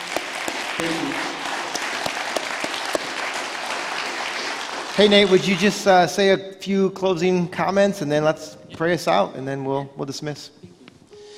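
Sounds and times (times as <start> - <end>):
audience applauding: 0.0 - 6.1
speech: 5.0 - 10.6.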